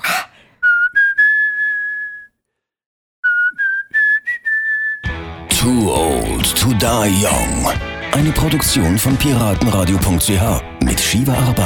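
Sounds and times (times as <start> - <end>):
whistled intro melody of rock ballad: 0.6 - 2.4, 3.2 - 5.2
speech: 5.6 - 11.6.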